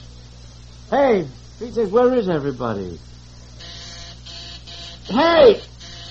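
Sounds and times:
speech: 0:00.9 - 0:03.1, 0:05.1 - 0:05.7
electric buzzer: 0:01.5 - 0:06.0.

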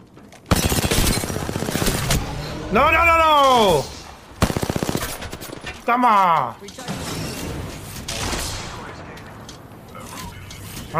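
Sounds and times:
gunfire in the video game Apex Legends: 0:00.5 - 0:02.2, 0:04.4 - 0:05.5
speech: 0:02.7 - 0:03.9, 0:05.9 - 0:07.0.

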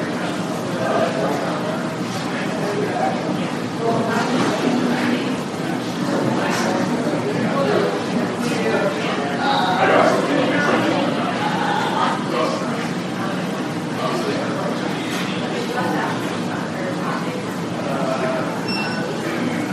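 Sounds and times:
murmur of many voices in a hospital emergency room: 0:00.0 - 0:19.7.

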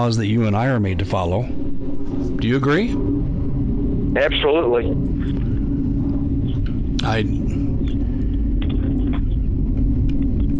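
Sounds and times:
speech: 0:00.0 - 0:01.6, 0:02.4 - 0:03.2, 0:04.2 - 0:05.4, 0:07.0 - 0:07.4
F-35 fighter jets flying overhead: 0:00.0 - 0:10.5.

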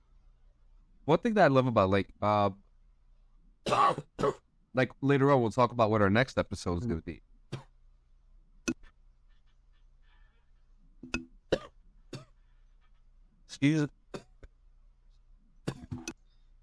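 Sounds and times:
speech: 0:01.1 - 0:02.6, 0:03.6 - 0:07.3, 0:13.6 - 0:14.0
man coughing harshly: 0:03.7 - 0:04.4.

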